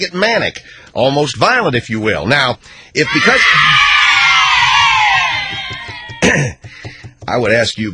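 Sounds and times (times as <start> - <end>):
speech: 0.0 - 3.9, 6.3 - 7.9
children cheering: 3.0 - 6.3.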